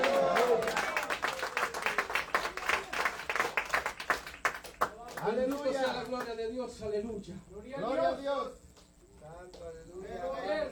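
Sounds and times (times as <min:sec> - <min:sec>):
audience applause: 0:00.0 - 0:05.0
speech: 0:05.3 - 0:08.6, 0:09.4 - 0:10.6.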